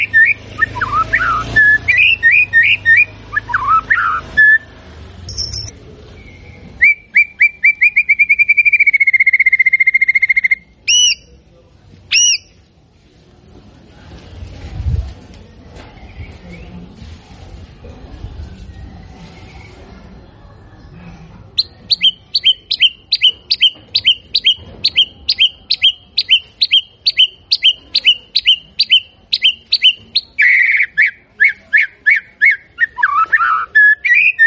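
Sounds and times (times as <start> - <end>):
White-rumped shama whistled song: 0.0 - 4.6, 5.3 - 11.3, 21.6 - 34.4.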